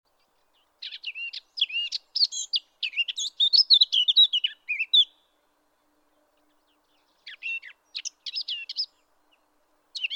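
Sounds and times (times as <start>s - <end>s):
Eurasian blackcap song: 0.2s - 5.2s, 6.7s - 9.0s, 10.0s - 10.1s.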